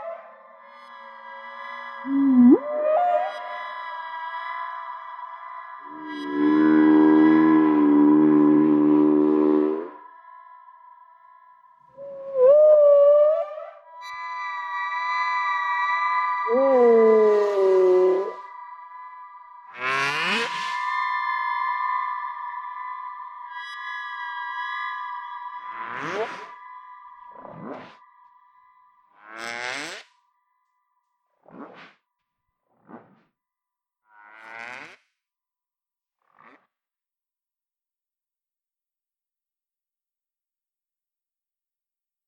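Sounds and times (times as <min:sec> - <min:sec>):
stellar ocean whale: 0:00.0 - 0:30.2.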